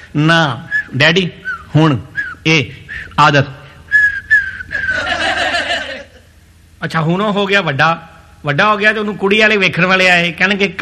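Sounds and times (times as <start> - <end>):
speech: 0.1 - 3.6, 6.8 - 10.8
person whistling: 0.7 - 3.2, 3.9 - 5.1
laughter: 4.7 - 6.3.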